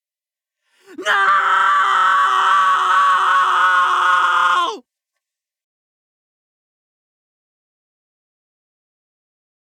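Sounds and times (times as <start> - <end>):
person screaming no: 0.9 - 4.8.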